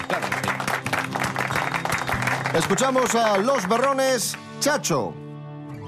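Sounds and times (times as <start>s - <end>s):
crowd applauding: 0.0s - 4.6s
speech: 2.6s - 5.2s.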